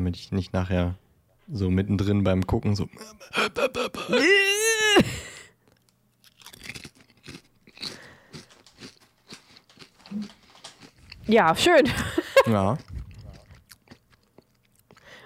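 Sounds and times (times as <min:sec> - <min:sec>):
speech: 0:00.0 - 0:05.3, 0:11.3 - 0:12.9
person moaning: 0:03.0 - 0:05.5
potato chip crunching while being eaten: 0:05.7 - 0:11.4, 0:12.4 - 0:15.0.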